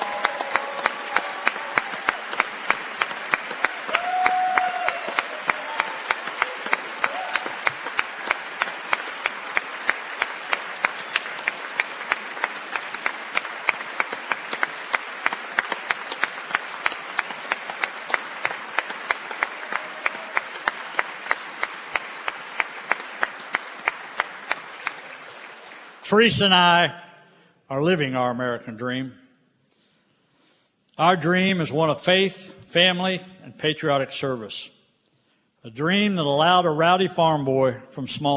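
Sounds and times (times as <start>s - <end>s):
audience applause for children: 0.0s - 26.6s
speech: 26.1s - 27.0s, 27.7s - 29.2s, 31.0s - 34.8s, 35.6s - 38.3s.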